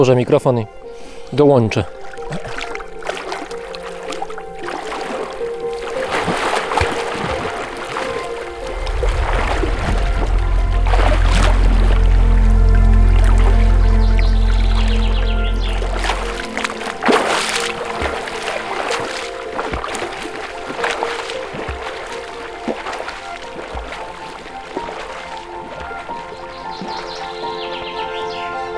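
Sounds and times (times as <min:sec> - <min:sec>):
speech: 0:00.0 - 0:02.5
person swimming and splashing in lake water: 0:02.1 - 0:28.6
deep rumbling swell: 0:08.0 - 0:18.0.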